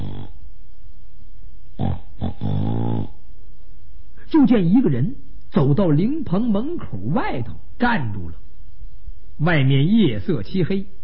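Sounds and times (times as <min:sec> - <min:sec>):
voice imitating snoring: 0:00.0 - 0:00.4, 0:01.8 - 0:03.2
speech: 0:04.4 - 0:08.4, 0:09.4 - 0:11.0.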